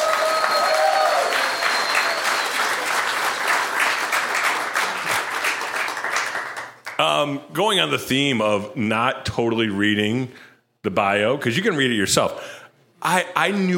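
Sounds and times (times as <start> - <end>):
audience applause: 0.0 - 7.0
faint whistles: 0.1 - 2.8
speech: 7.0 - 13.7.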